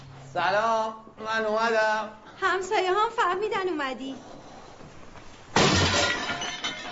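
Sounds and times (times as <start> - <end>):
speech: 0.4 - 4.3
glass flower vase breaking: 5.5 - 6.8.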